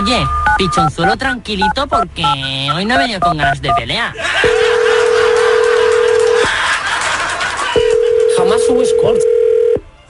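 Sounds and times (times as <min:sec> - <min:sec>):
speech: 0:00.1 - 0:04.7, 0:08.7 - 0:09.4
laughter: 0:04.1 - 0:08.3
telephone ringing tone: 0:04.4 - 0:06.4, 0:07.8 - 0:09.8.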